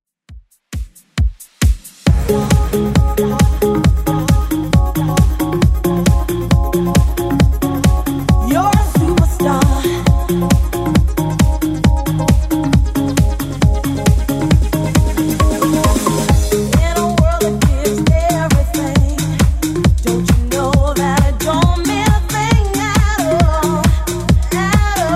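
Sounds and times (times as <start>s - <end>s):
90s-style electronic track at 135 bpm: 0.3s - 25.1s.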